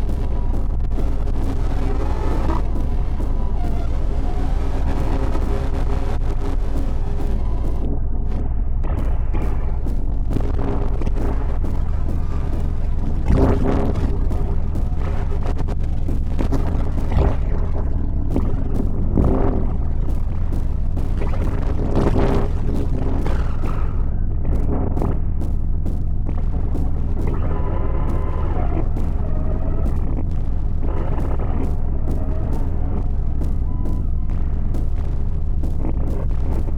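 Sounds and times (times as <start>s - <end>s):
noise session: 0.0s - 36.7s.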